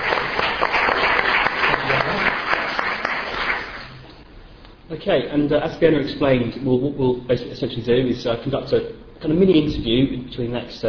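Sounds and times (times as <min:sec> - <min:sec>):
audience applause welcoming Michael Howard onto a show: 0:00.0 - 0:04.0
speech: 0:05.0 - 0:10.8.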